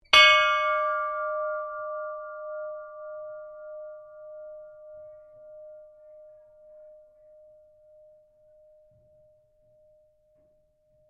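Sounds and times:
iron ship's bell ringing: 0.1s - 8.4s.

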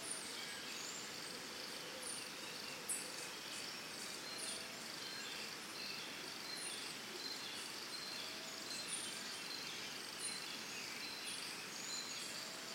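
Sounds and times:
birds in Costa Rica early morning: 0.0s - 12.7s
crickets in Costa Rica early morning: 0.0s - 12.7s.

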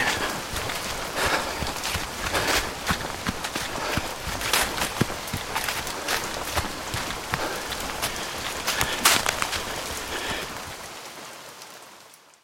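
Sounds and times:
out of breath man jogging in rain through rural landscape: 0.0s - 10.8s
rain in rural landscape: 0.0s - 12.4s.

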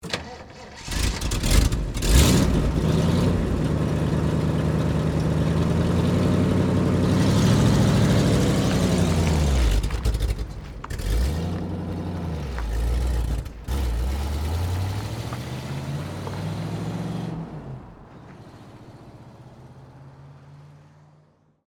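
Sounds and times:
Jeep automobile starting and driving away: 0.0s - 21.6s.

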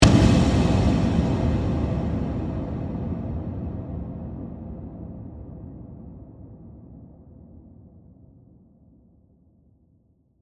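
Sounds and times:
dark airy horror hit: 0.0s - 6.1s.

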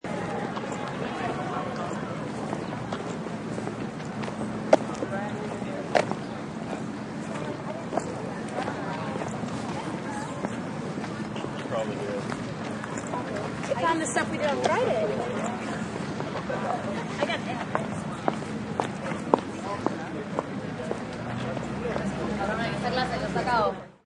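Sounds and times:
college campus outdoor ambience: 0.0s - 24.0s.

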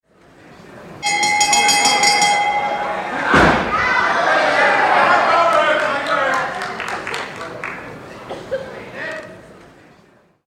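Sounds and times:
quiet chatter: 0.1s - 5.2s, 6.2s - 10.4s
bell ringing for end of round: 1.0s - 3.5s
laughter: 2.8s - 9.4s.

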